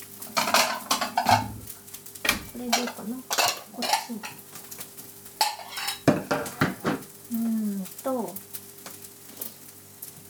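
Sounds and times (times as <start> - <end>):
plates clinking and clattering while cooking: 0.3 - 4.4, 5.4 - 7.0.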